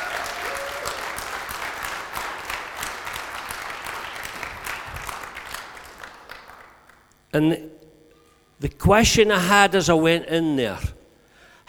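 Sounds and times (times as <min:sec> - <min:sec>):
large audience applause: 0:00.0 - 0:07.0
speech: 0:07.3 - 0:07.7, 0:08.6 - 0:10.9.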